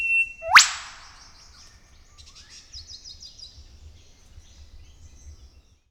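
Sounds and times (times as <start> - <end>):
Eastern whipbird Psophodes olivaceus whip call: 0.1 - 1.2.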